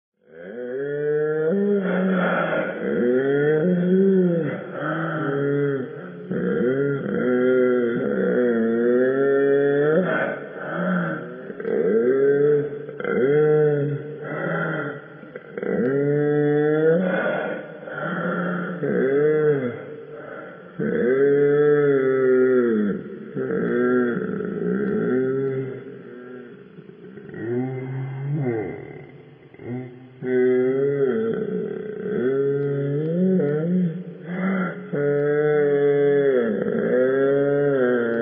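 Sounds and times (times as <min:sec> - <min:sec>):
spooky ghost moaning: 0:00.2 - 0:38.2.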